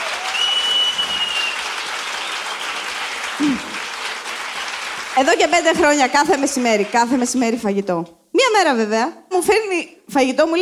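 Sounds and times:
audience applause: 0.0 - 7.6
speech: 5.2 - 10.6.

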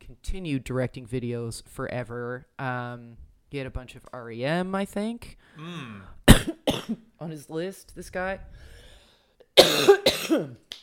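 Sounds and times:
speech: 0.1 - 8.8, 9.6 - 10.8
person coughing from choking on cheese: 5.6 - 7.0, 9.6 - 10.6.

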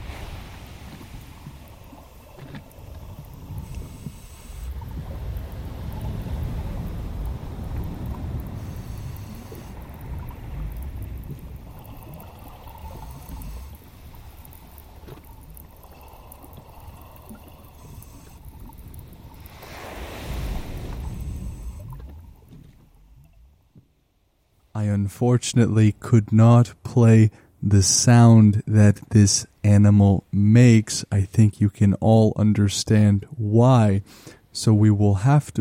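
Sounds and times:
wind buffeting: 0.0 - 14.2
ocean waves with a deep rumbling roar: 0.0 - 23.8
speech: 24.8 - 35.6.

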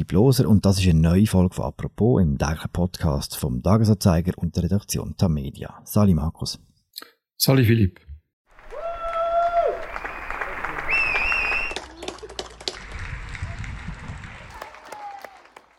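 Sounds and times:
speech: 0.0 - 8.1
crowd applauding for nurses: 8.5 - 15.7
shouted cheers: 8.6 - 12.0, 13.4 - 15.7
shrill whistles: 9.8 - 11.8.

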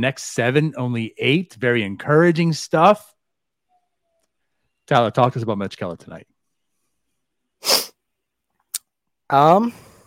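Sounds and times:
speech: 0.0 - 3.1, 4.9 - 6.3, 9.3 - 9.8
sniffle: 7.6 - 8.0.

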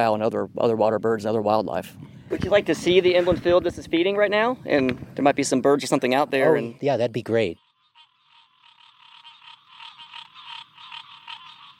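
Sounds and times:
speech: 0.0 - 7.6
green tree frogs chorusing: 6.0 - 11.7.

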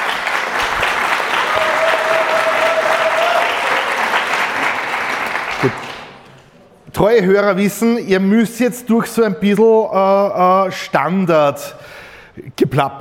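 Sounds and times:
audience applause: 0.0 - 6.4
speech: 7.0 - 13.0.

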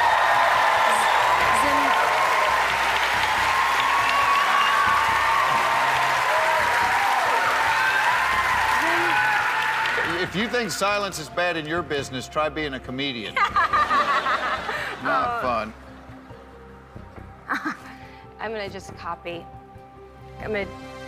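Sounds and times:
applause: 0.0 - 11.0
speech: 10.4 - 14.0, 15.0 - 15.8, 18.4 - 19.6, 20.4 - 20.8
laughter: 13.3 - 16.6.

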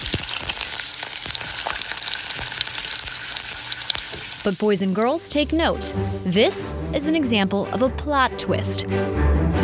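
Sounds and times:
thin potato slices frying to a crisp in hot oil: 0.0 - 7.1
speech: 4.4 - 9.5.

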